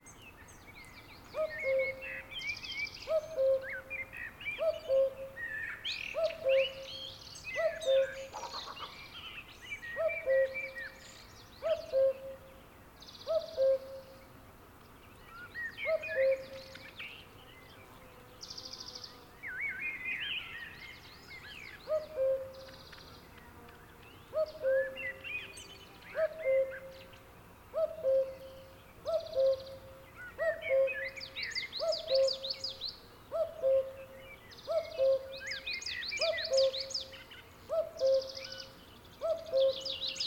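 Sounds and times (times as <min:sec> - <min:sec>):
other birds chirping and twittering: 0:00.0 - 0:40.2
cuckoo calling: 0:01.3 - 0:09.0, 0:09.9 - 0:12.5, 0:13.2 - 0:14.2, 0:15.4 - 0:16.9, 0:21.8 - 0:23.0, 0:24.3 - 0:40.2.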